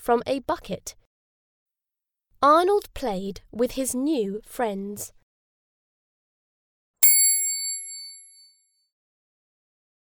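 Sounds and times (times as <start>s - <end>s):
speech: 0.0s - 1.0s, 2.4s - 5.2s
bell ringing: 7.0s - 8.5s.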